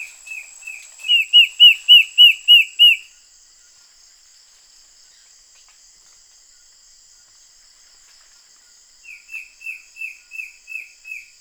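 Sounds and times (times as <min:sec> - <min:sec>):
bird whistling: 0:00.0 - 0:03.0
high hiss: 0:00.0 - 0:03.0.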